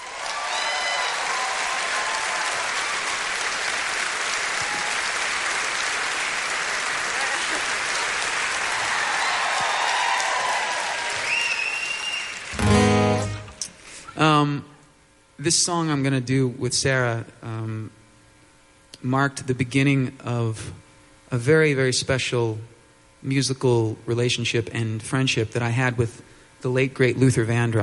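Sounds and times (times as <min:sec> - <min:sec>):
audience applause welcoming a singer-songwriter onto the stage: 0:00.0 - 0:13.5
speech: 0:15.5 - 0:18.0, 0:19.0 - 0:27.8.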